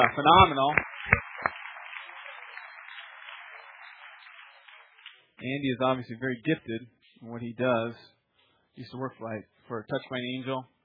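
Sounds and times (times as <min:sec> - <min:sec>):
speech: 0:00.0 - 0:01.2, 0:05.4 - 0:08.2, 0:08.8 - 0:10.7
audience applause: 0:00.0 - 0:05.4.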